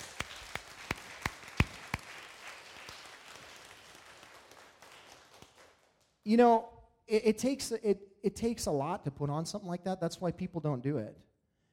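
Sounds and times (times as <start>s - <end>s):
audience round of applause: 0.0s - 5.8s
speech: 6.3s - 11.3s.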